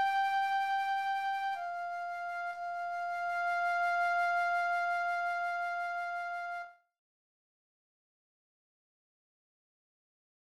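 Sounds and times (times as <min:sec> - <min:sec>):
flute: 0:00.0 - 0:06.9.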